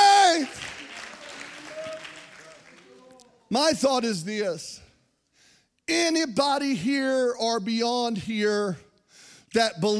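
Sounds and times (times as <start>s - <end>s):
congregation clapping hands: 0.0s - 3.4s
speech: 3.5s - 4.8s, 5.9s - 8.8s, 9.5s - 9.9s.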